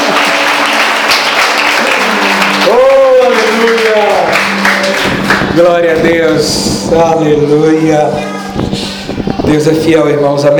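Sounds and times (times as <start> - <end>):
church congregation applause after a prayer: 0.0 - 6.5
speech: 5.6 - 10.5.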